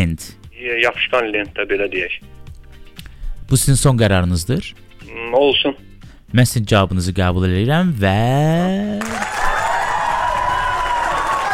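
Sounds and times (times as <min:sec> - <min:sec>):
speech: 0:00.0 - 0:02.4, 0:03.5 - 0:09.4
applause and cheering for a quiz show contestant: 0:09.0 - 0:11.5.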